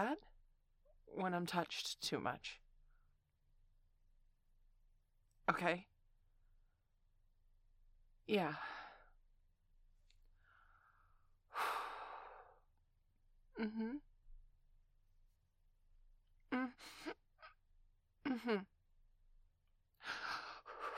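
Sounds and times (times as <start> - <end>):
speech: 0.0 - 0.3, 1.1 - 2.6, 5.5 - 5.9, 8.3 - 8.8, 13.6 - 14.1, 16.6 - 17.2, 18.3 - 18.7
person breathing heavily while trying to get through discomfort: 10.4 - 12.7, 20.0 - 20.9.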